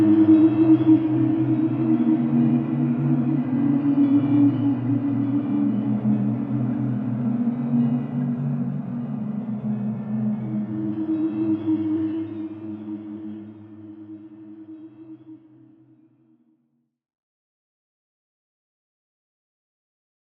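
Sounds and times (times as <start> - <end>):
cave ambience: 0.0 - 15.1.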